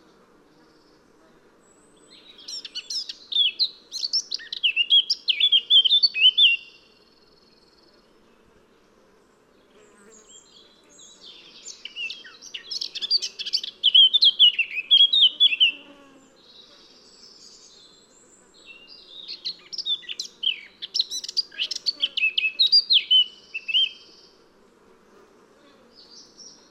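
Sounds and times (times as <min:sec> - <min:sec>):
Eurasian blackcap Sylvia atricapilla singing: 0:02.2 - 0:06.8, 0:11.2 - 0:15.8, 0:18.7 - 0:24.1.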